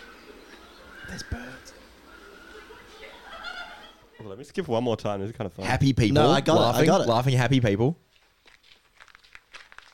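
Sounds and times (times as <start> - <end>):
speech: 1.1 - 1.8, 4.2 - 8.0
laughter: 2.2 - 4.2
footsteps crunching on gravel: 8.1 - 9.9.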